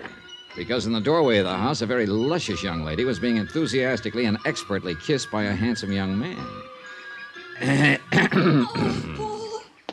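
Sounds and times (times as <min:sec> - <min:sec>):
speech: 0:00.6 - 0:06.7, 0:07.6 - 0:09.1
cough: 0:08.0 - 0:09.3.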